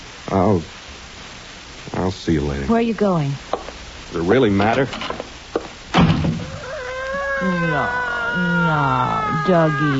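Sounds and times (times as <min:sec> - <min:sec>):
speech: 0:00.3 - 0:00.8, 0:02.2 - 0:03.5, 0:04.1 - 0:05.3, 0:07.4 - 0:09.9
door slamming: 0:05.9 - 0:06.6.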